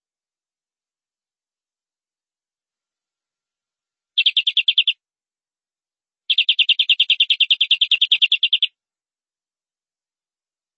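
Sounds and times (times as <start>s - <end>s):
canary song: 4.2s - 5.0s, 6.2s - 8.8s.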